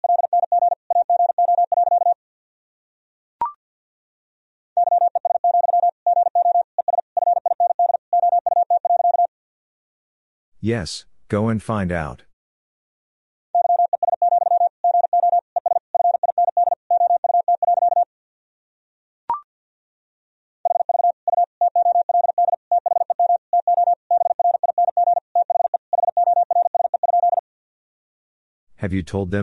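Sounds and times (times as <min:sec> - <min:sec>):
Morse code tones at 50 wpm: 0:00.0 - 0:02.2, 0:04.8 - 0:09.3, 0:13.6 - 0:18.1, 0:20.7 - 0:27.4
speech: 0:10.6 - 0:12.3, 0:28.8 - 0:29.4.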